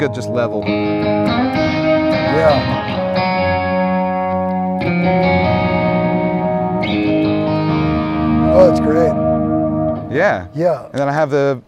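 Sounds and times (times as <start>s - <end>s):
speech: 0.0s - 3.3s, 4.9s - 5.7s, 8.6s - 9.3s, 10.1s - 11.6s
crunchy mildly distorted electric guitar through effects pedal rig playing chords: 0.0s - 11.0s.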